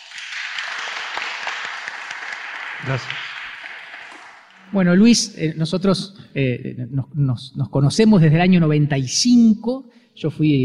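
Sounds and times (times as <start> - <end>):
audience applause welcoming a composer at a concert: 0.0 - 4.8
speech: 2.8 - 3.3, 4.7 - 10.6.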